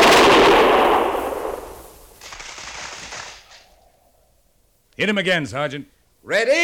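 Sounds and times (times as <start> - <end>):
military gunfire volley fired on a shouted command: 0.0 - 3.8
speech: 5.0 - 6.6.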